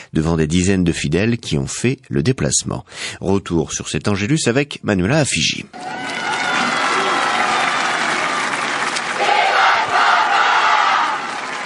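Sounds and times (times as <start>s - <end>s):
speech: 0.1s - 6.2s
crowd applauding and cheering: 5.7s - 11.6s.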